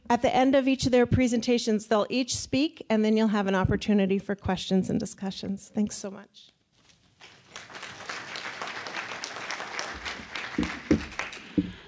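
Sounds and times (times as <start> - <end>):
speech: 0.1 - 6.6
audience applause: 7.4 - 11.8.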